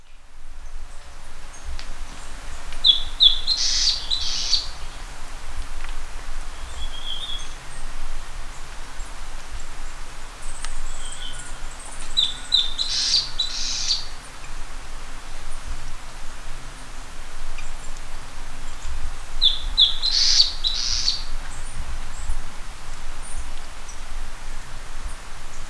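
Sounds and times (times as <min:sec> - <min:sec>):
bird chirping: 0:00.0 - 0:05.0, 0:06.5 - 0:07.9, 0:10.4 - 0:14.7, 0:17.5 - 0:25.6
low rumble and hiss: 0:00.0 - 0:25.6.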